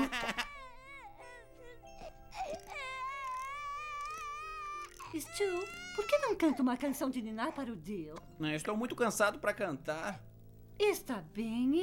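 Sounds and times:
baby boy crying: 0:00.0 - 0:07.6
speech: 0:05.1 - 0:11.8.

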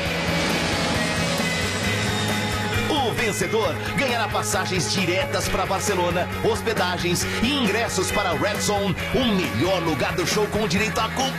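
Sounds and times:
airplane passing overhead: 0:00.0 - 0:02.9
speech: 0:03.3 - 0:11.3.

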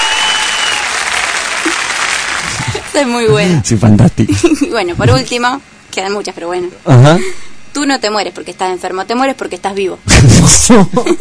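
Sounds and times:
many hands clapping: 0:00.0 - 0:02.9
speech: 0:03.0 - 0:11.2.

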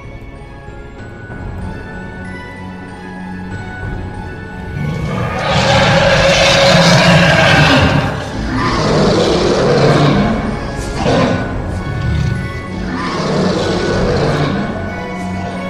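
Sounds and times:
white tiger roaring: 0:04.7 - 0:15.6.

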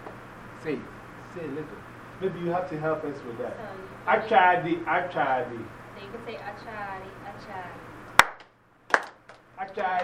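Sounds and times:
speech: 0:00.6 - 0:07.9, 0:09.6 - 0:10.0
group clapping hands in unison: 0:08.2 - 0:10.0.

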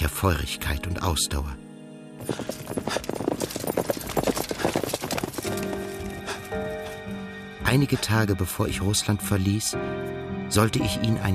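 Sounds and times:
speech: 0:00.2 - 0:03.7, 0:07.7 - 0:11.3
horse hooves clip-clopping: 0:02.2 - 0:07.2.

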